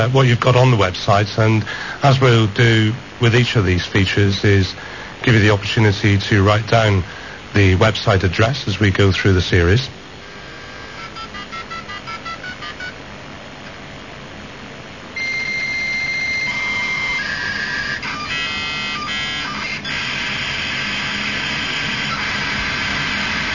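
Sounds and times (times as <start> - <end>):
speech: 0.0 - 10.0
dial-up modem connecting: 10.2 - 13.0, 15.2 - 23.5.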